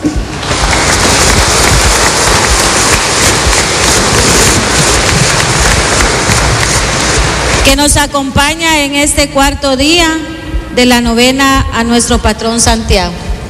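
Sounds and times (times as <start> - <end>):
audience applauding loudly: 0.2 - 7.8
speech: 7.6 - 13.2.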